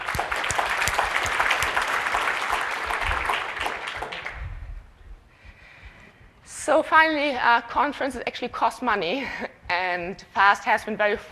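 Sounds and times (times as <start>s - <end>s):
applause: 0.0s - 4.6s
speech: 6.7s - 11.3s.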